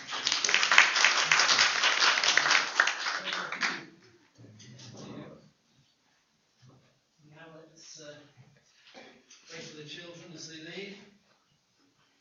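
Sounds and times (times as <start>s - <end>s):
round of applause: 0.0s - 4.0s.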